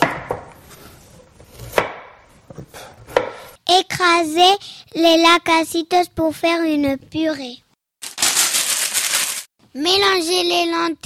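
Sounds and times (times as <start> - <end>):
knife chopping food into sticks on a cutting board: 1.6 - 2.1, 3.1 - 3.6
speech: 3.7 - 7.6, 9.8 - 11.0.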